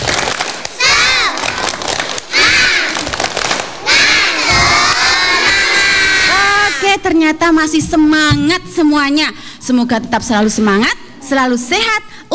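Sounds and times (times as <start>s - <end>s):
children doing a spirit clapping chant: 0.0s - 6.9s
speech: 7.1s - 12.3s.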